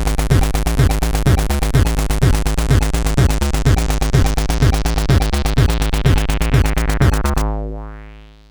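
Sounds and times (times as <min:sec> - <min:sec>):
acid synth: 0:00.0 - 0:08.5.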